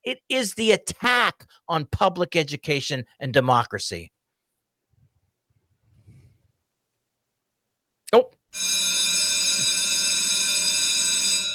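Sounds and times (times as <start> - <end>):
speech: 0.1 - 4.2, 8.1 - 9.1
bell ringing: 8.6 - 11.5.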